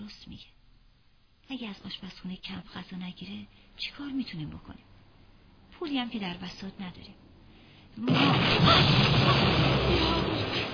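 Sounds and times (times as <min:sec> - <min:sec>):
speech: 0:00.1 - 0:00.6, 0:01.5 - 0:04.9, 0:05.8 - 0:07.2, 0:08.0 - 0:09.6
rocket explosion: 0:08.0 - 0:10.7.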